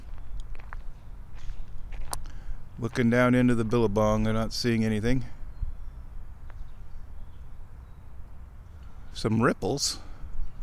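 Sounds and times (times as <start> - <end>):
footsteps walking across a land bridge: 0.0 - 3.7
speech: 2.8 - 5.4, 9.2 - 10.1.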